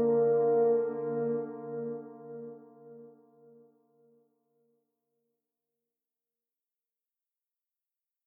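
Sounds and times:
French horn background loop: 0.0s - 3.0s.

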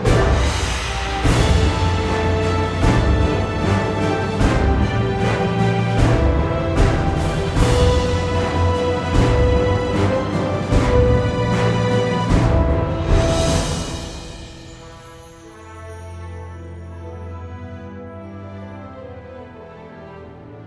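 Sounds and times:
mecha boss battle background music: 0.0s - 15.1s.

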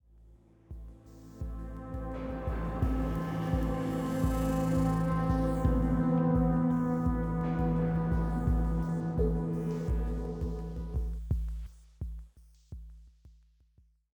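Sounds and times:
military music: 0.8s - 11.5s.

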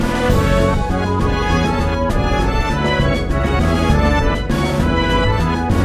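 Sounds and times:
stage start jingle: 0.1s - 5.7s.

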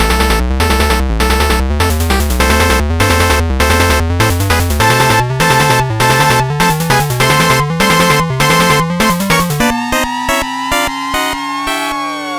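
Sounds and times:
battle intro music: 0.0s - 12.0s.

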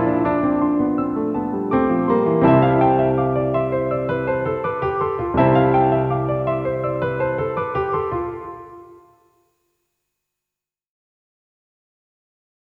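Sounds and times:
piano piece: 0.0s - 9.4s.

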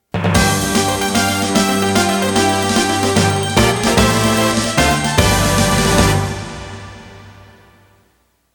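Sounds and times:
fanfare: 0.3s - 8.0s.

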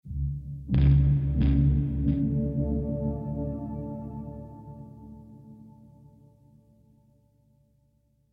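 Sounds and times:
lap steel guitar rhythm: 0.8s - 5.2s.

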